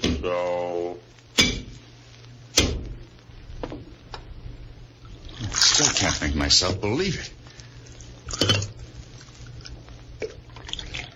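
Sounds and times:
steady low hum: 0:00.0 - 0:11.1
coffee being poured: 0:05.0 - 0:06.6, 0:07.7 - 0:11.1
speech: 0:06.0 - 0:07.4
cup clattering: 0:08.3 - 0:08.7.

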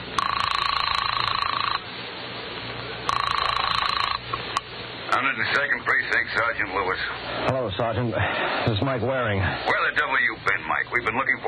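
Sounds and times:
telephone being dialed: 0:00.2 - 0:01.8, 0:03.1 - 0:04.6
speech: 0:05.6 - 0:11.4.

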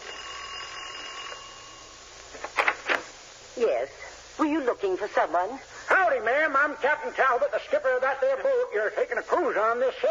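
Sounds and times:
doorbell ringing: 0:00.0 - 0:02.1
speech: 0:03.6 - 0:10.1.

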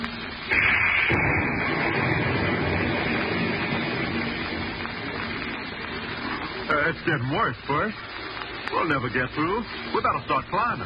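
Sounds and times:
thunderstorm thunder crack rolling into rumbling roar: 0:00.5 - 0:07.1
speech: 0:06.9 - 0:10.8.

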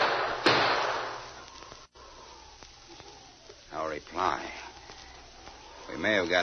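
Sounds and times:
gunshot in a radio drama: 0:00.0 - 0:01.3
steady hiss: 0:00.0 - 0:06.4
speech: 0:04.0 - 0:04.7, 0:05.9 - 0:06.4.

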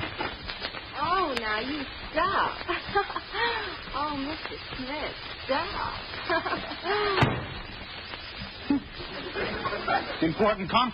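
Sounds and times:
low rumble: 0:00.0 - 0:10.3
faint high whine: 0:00.0 - 0:10.9
speech: 0:01.6 - 0:07.6, 0:08.7 - 0:10.9
laughter: 0:02.6 - 0:03.9, 0:06.2 - 0:07.2, 0:08.6 - 0:10.6
door slamming: 0:07.2 - 0:07.6.

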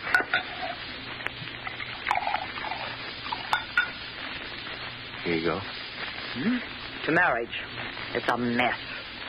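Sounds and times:
glassware clinking: 0:00.1 - 0:00.8, 0:02.0 - 0:04.0
bourbon being poured into a glass: 0:01.6 - 0:03.9
speech: 0:05.3 - 0:08.9.

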